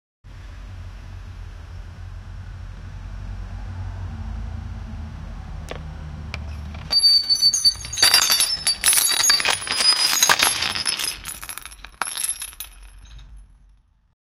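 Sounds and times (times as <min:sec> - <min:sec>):
car: 0:00.3 - 0:06.9
glass breaking: 0:06.5 - 0:13.4.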